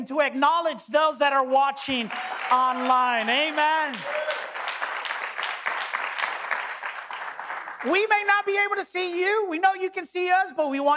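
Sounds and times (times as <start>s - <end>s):
speech: 0.0s - 4.4s, 7.8s - 10.9s
audience applause: 2.0s - 8.0s.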